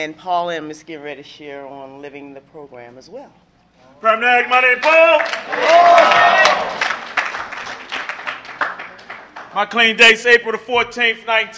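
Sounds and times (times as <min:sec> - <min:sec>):
speech: 0:00.0 - 0:06.8, 0:09.5 - 0:11.5
audience clapping and cheering at a narcotics recovery meeting: 0:04.5 - 0:09.9.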